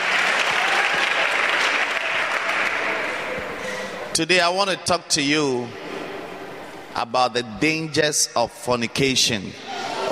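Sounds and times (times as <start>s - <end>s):
audience applause: 0.0s - 3.6s
speech: 4.2s - 5.9s, 7.0s - 10.1s.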